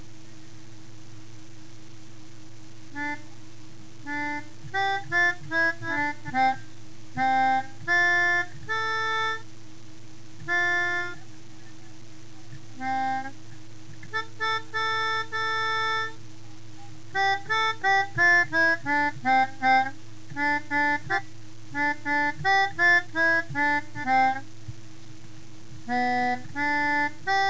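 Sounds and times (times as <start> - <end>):
melodica: 2.9 - 3.4, 4.0 - 9.5, 10.4 - 11.9, 12.7 - 16.2, 17.1 - 24.5, 25.8 - 27.4.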